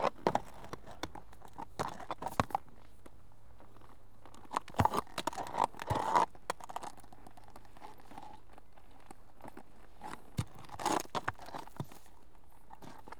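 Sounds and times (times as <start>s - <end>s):
one horse walking on approach: 0.0s - 13.1s.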